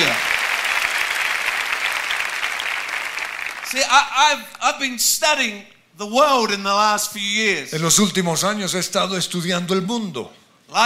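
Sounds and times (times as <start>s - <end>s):
audience applauding: 0.0s - 4.1s
speech: 3.7s - 10.8s.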